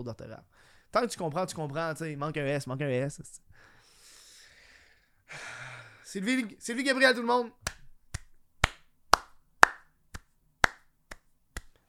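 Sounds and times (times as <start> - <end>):
speech: 0.0 - 3.7, 5.3 - 7.8
single person clapping hands: 7.6 - 11.8.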